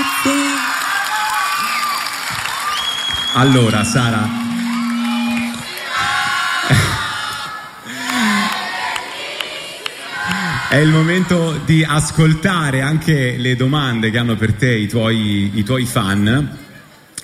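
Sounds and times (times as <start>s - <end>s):
live audience applauding: 0.0s - 11.2s
speech: 3.4s - 4.4s, 10.7s - 16.6s.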